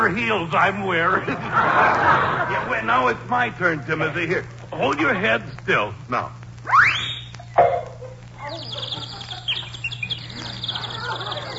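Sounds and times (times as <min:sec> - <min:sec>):
speech: 0:00.0 - 0:06.4
laughter: 0:00.9 - 0:04.3, 0:08.7 - 0:11.5
little bird singing: 0:06.8 - 0:11.5.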